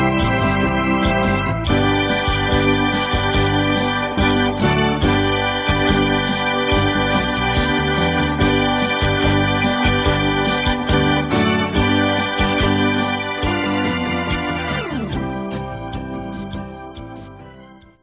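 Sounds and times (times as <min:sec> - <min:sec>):
Hammond organ: 0:00.0 - 0:18.0.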